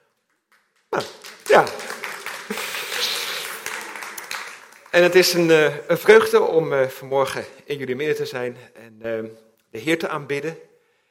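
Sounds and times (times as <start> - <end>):
church congregation applause: 0.0 - 6.2
speech: 0.9 - 1.8, 5.0 - 10.7.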